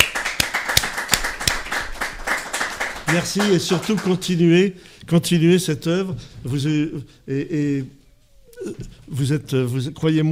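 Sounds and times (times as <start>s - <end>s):
small group applauding: 0.0s - 4.4s
speech: 3.1s - 8.0s, 8.6s - 10.2s.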